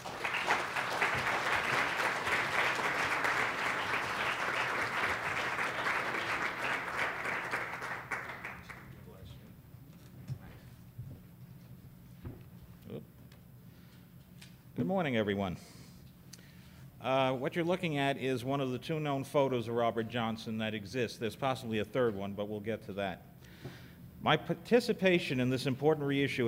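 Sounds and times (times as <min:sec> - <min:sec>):
audience applauding to welcome a speaker to a presentation: 0:00.0 - 0:09.2
speech: 0:14.9 - 0:15.8, 0:17.1 - 0:23.2, 0:24.2 - 0:26.4.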